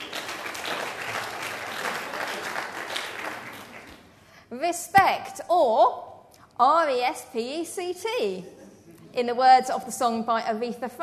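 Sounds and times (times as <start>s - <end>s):
audience applause: 0.0s - 4.1s
speech: 4.5s - 8.6s, 9.2s - 11.0s.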